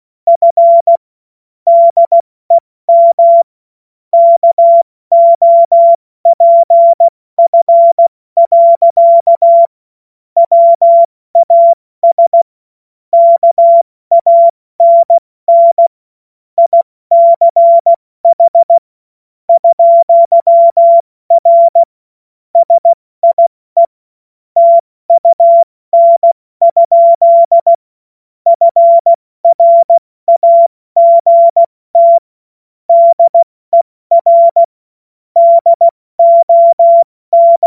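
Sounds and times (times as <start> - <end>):
CW Morse code beeps: 0.3 - 1.0, 1.7 - 2.2, 2.9 - 3.5, 4.2 - 9.7, 10.4 - 12.5, 13.2 - 15.9, 16.6 - 18.8, 19.5 - 21.9, 22.6 - 24.0, 24.6 - 27.8, 28.5 - 32.3, 32.9 - 34.7, 35.4 - 37.6.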